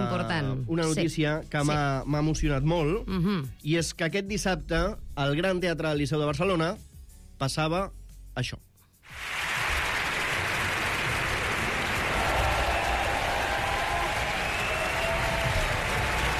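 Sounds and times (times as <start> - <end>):
speech: 0.2 - 9.3
opera audience ovation: 9.1 - 16.3.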